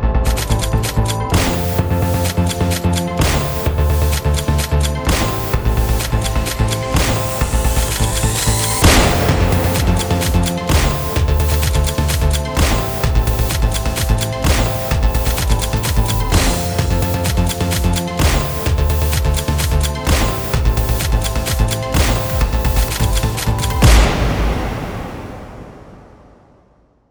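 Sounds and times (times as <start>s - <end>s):
cheerful beat-synced short music: 0.2s - 25.1s
gunshots: 0.3s - 18.8s, 21.4s - 26.5s.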